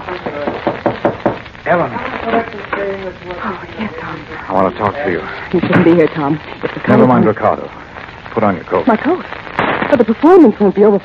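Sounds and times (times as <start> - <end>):
knocking on a door: 0.2 - 1.5
speech: 1.7 - 11.0.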